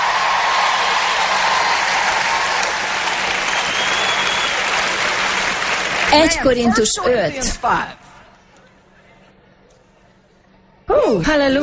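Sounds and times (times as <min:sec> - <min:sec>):
audience applauding: 0:00.0 - 0:06.6
speech: 0:06.1 - 0:08.0, 0:11.1 - 0:11.6.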